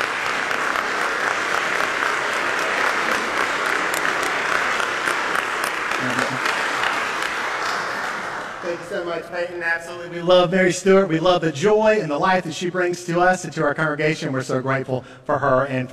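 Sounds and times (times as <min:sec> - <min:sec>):
audience applause: 0:00.0 - 0:09.2
speech: 0:08.9 - 0:15.9.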